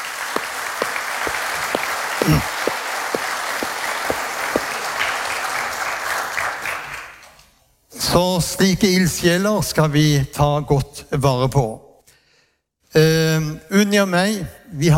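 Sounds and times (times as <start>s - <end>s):
audience applause: 0.0s - 7.2s
speech: 2.2s - 2.5s, 8.2s - 11.8s, 13.8s - 14.9s.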